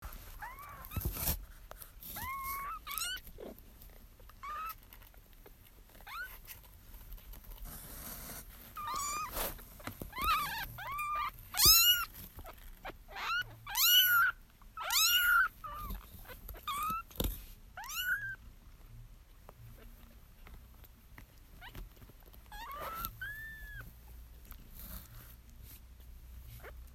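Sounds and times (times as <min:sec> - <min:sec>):
soft rustling: 0:00.0 - 0:26.9
kitten meowing: 0:02.1 - 0:03.5, 0:08.8 - 0:09.4, 0:10.1 - 0:12.1, 0:12.8 - 0:17.1, 0:17.8 - 0:18.4, 0:22.5 - 0:23.9.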